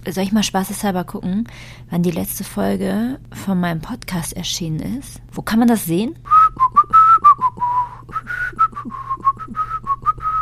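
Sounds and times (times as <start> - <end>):
speech: 0.0 - 6.8
person whistling a short wandering tune: 6.3 - 10.3.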